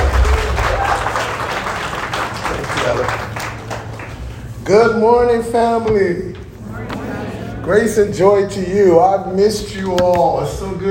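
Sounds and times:
crowd applause: 0.0 - 4.4
speech: 4.7 - 6.4, 7.7 - 10.8.

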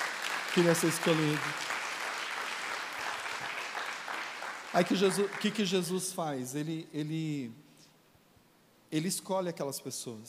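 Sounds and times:
audience applause: 0.0 - 6.0
speech: 0.6 - 1.7, 4.7 - 7.6, 8.9 - 10.2.

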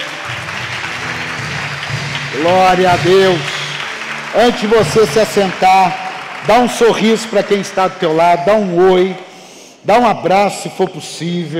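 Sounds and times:
audience applause: 0.0 - 9.1
speech: 2.3 - 3.5, 4.3 - 11.5.

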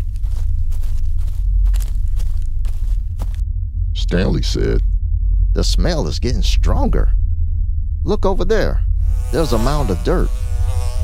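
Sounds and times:
footsteps walking across a farm: 0.0 - 3.5
constant low rumble: 0.0 - 11.0
speech: 4.1 - 4.9, 5.6 - 7.2, 8.0 - 10.4.

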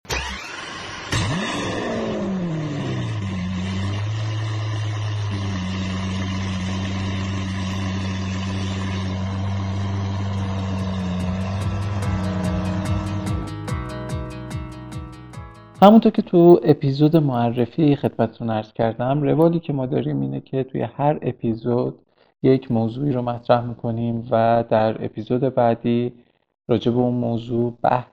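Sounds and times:
minibus engine revving up and droning with tonal whine: 0.1 - 15.0
fast ticking: 3.2 - 13.8
speech: 15.8 - 28.1.

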